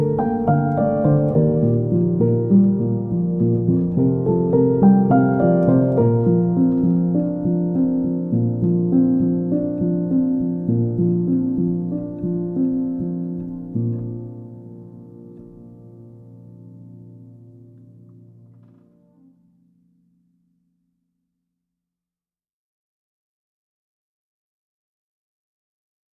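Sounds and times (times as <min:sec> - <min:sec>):
calm nature song: 0:00.0 - 0:20.8.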